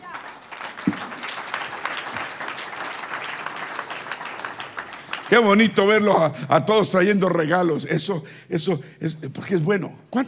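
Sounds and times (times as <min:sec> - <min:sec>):
audience applauding: 0:00.0 - 0:06.3
speech: 0:05.3 - 0:10.2.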